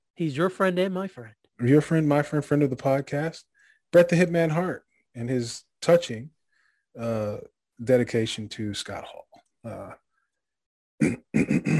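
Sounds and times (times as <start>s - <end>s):
speech: 0.2s - 10.0s, 11.0s - 11.7s
throat clearing: 7.0s - 7.4s, 9.7s - 10.0s, 11.0s - 11.7s.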